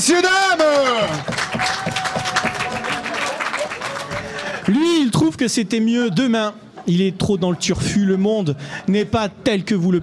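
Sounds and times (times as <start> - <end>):
speech: 0.0 - 1.8, 4.8 - 10.0
audience applause: 0.5 - 4.7.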